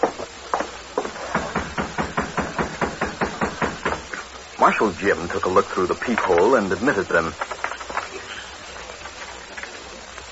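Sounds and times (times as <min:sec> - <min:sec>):
knocking on a back door: 0:01.0 - 0:04.1
speech: 0:04.6 - 0:07.5.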